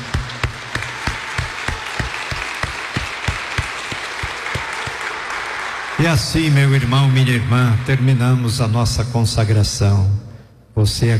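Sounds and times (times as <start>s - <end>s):
crowd applauding: 0.0s - 8.7s
speech: 6.0s - 11.1s.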